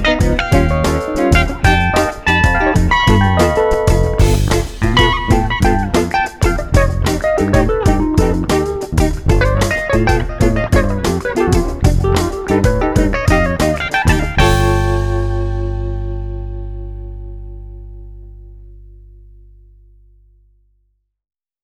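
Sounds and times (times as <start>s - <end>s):
whole tone: 0.0s - 20.6s.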